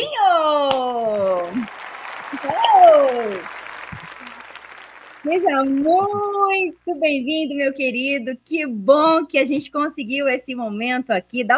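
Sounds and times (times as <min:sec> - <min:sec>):
audience applause: 0:00.7 - 0:06.4
speech: 0:05.3 - 0:11.5.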